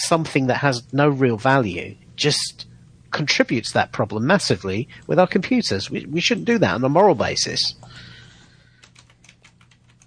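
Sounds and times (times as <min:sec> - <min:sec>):
speech: 0:00.0 - 0:08.1
typing on a computer keyboard: 0:08.7 - 0:10.0.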